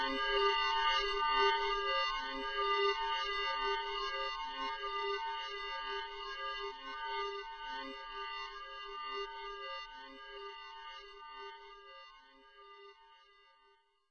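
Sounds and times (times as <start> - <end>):
guitar: 0.0 - 11.0.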